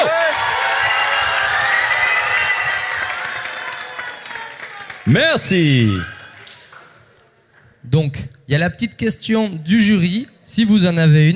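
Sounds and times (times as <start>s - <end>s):
crowd cheering and applauding: 0.0s - 7.0s
speech: 5.0s - 6.2s, 7.9s - 11.3s.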